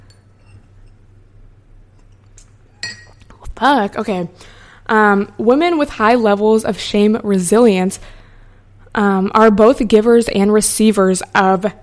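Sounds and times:
ceramic coffee mug clinking: 0:02.8 - 0:03.2
speech: 0:03.6 - 0:08.2, 0:09.0 - 0:11.8.

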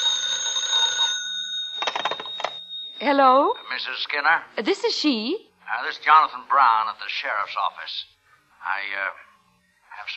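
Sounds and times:
telephone bell ringing: 0:00.0 - 0:04.0
speech: 0:03.0 - 0:09.2.

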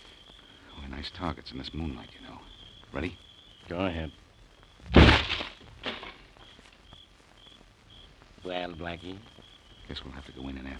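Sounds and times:
speech: 0:01.0 - 0:04.2, 0:08.4 - 0:10.7
door being kicked open: 0:04.8 - 0:06.2.

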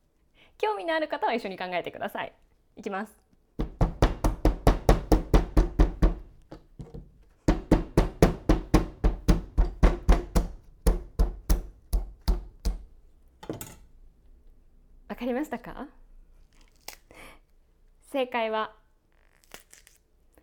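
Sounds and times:
speech: 0:00.6 - 0:03.2, 0:15.2 - 0:16.1, 0:18.1 - 0:18.8
cucumber smashed with kitchen knife handle: 0:03.6 - 0:13.8.

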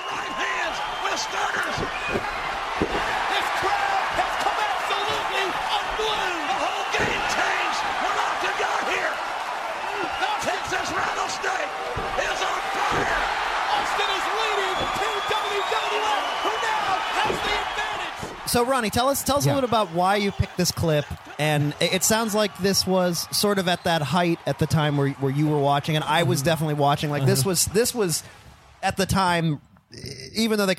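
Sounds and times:
wrestling crowd roaring: 0:00.0 - 0:26.4
slams in an ECW wrestling match: 0:00.1 - 0:19.4
speech: 0:18.6 - 0:30.7.

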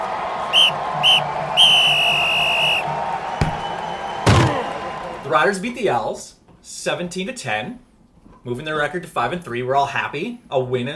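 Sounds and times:
referee whistle for kickoff: 0:00.4 - 0:04.9
speech: 0:05.3 - 0:10.9.

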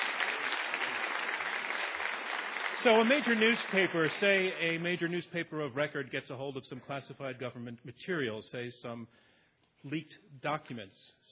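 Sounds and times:
audience round of applause: 0:00.0 - 0:04.8
speech: 0:02.8 - 0:11.2.

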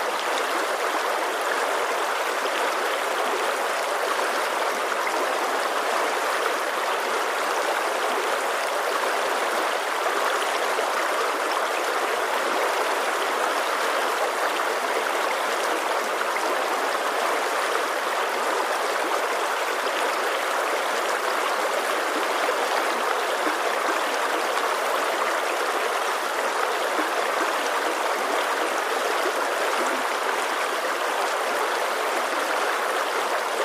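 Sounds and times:
mountain stream rushing and bubbling: 0:00.0 - 0:33.6.

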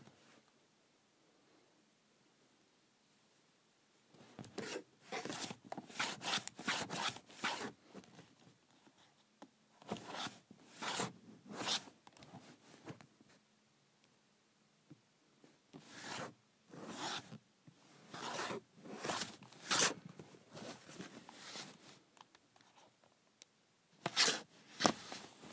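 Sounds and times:
calculator cover sliding on and off: 0:04.4 - 0:07.8, 0:09.8 - 0:11.9, 0:15.8 - 0:17.4, 0:18.1 - 0:21.8, 0:24.0 - 0:25.5.

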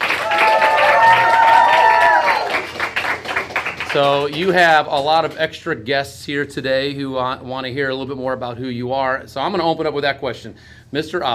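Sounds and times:
people cheering: 0:00.0 - 0:03.0
audience applause: 0:00.0 - 0:04.5
speech: 0:03.9 - 0:11.3.

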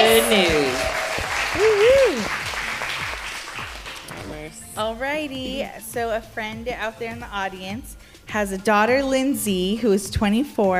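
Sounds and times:
audience cheering: 0:00.0 - 0:04.2
speech: 0:00.2 - 0:02.4, 0:04.8 - 0:10.7.

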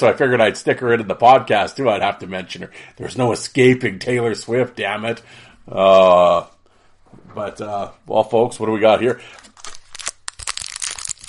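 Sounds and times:
speech: 0:00.0 - 0:06.6, 0:07.2 - 0:09.5
pack of hockey cards being torn open: 0:09.3 - 0:11.2.

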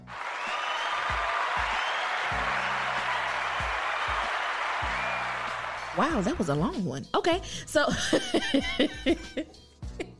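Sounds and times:
audience clapping: 0:00.0 - 0:06.6
speech: 0:06.0 - 0:09.7
laughter: 0:07.9 - 0:09.4.

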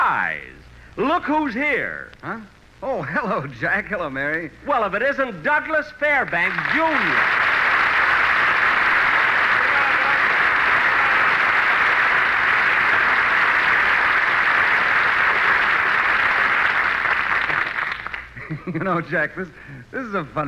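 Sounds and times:
speech: 0:00.2 - 0:07.5, 0:18.7 - 0:20.4
crowd applause: 0:06.3 - 0:18.6
laughter: 0:18.4 - 0:19.1.

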